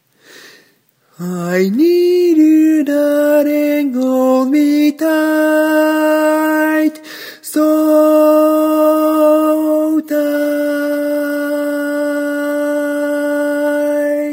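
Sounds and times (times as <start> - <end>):
barbershop tags lead voice: 1.2 - 14.3.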